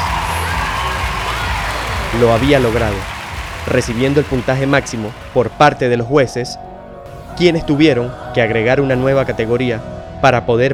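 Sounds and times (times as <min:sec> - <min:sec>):
crowd cheering and applauding: 0:00.0 - 0:05.8
speech: 0:02.2 - 0:06.7, 0:07.4 - 0:10.7.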